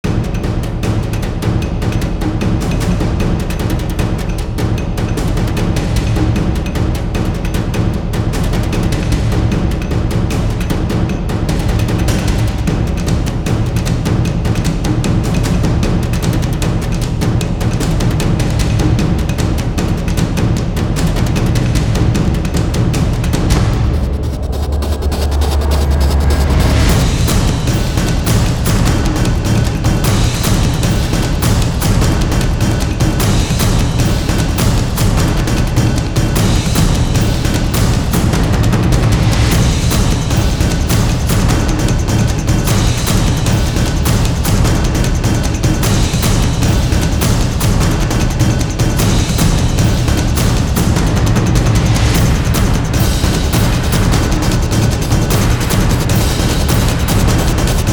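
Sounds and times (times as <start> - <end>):
drums: 0.0 - 57.9.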